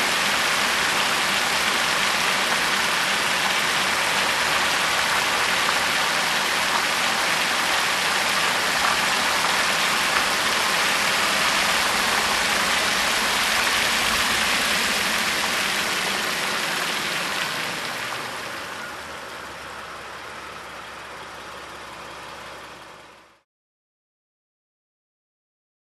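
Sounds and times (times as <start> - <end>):
car driving on wet road: 0.0 - 23.4.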